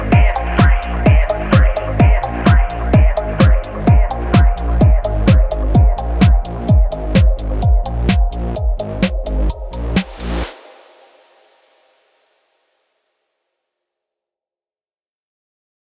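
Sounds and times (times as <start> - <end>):
phonk music: 0.0 - 11.8.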